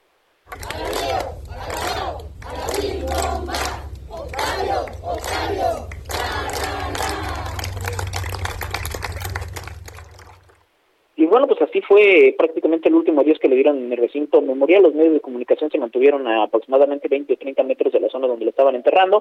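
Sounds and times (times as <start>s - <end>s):
applause at a funeral: 0.5s - 10.6s
crowd cheering at a funeral: 0.5s - 10.6s
speech: 11.8s - 19.1s.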